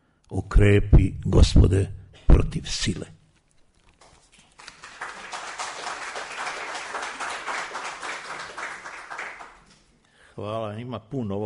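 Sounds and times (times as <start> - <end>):
speech: 0.3 - 3.2, 10.4 - 11.4
audience applause: 4.5 - 9.8.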